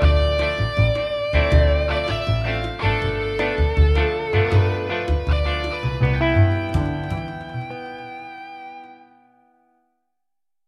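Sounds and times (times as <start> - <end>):
jazzy guitars: 0.0 - 9.8.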